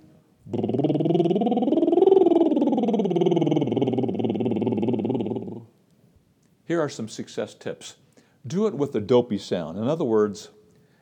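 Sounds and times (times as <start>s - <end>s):
singer's bubble-lips lip trill sliding low to high: 0.5s - 5.7s
speech: 6.7s - 10.6s.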